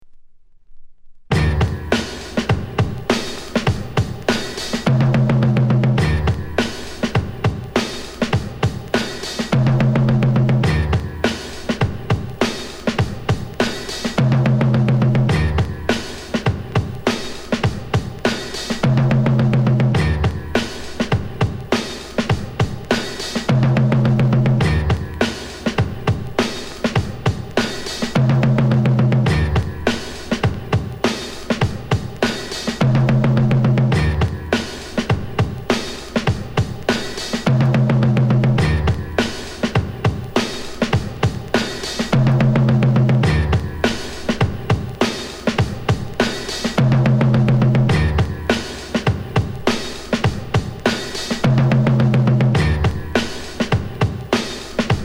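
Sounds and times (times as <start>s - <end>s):
music beat: 1.3s - 55.0s.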